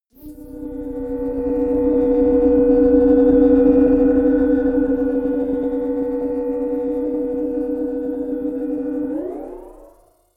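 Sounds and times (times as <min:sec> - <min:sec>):
long whoosh drone swell: 0:00.2 - 0:09.9.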